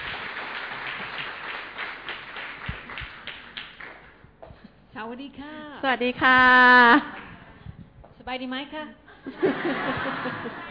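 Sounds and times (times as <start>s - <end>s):
crowd clapping in welcome: 0.0s - 4.2s
speech: 5.0s - 7.2s, 8.2s - 10.6s
laughter: 9.2s - 10.6s.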